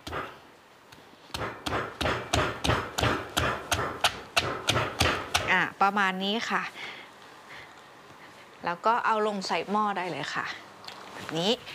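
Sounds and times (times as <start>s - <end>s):
pounding onion to crush it: 1.3s - 5.6s
speech: 5.8s - 7.0s, 8.6s - 10.6s, 11.3s - 11.7s.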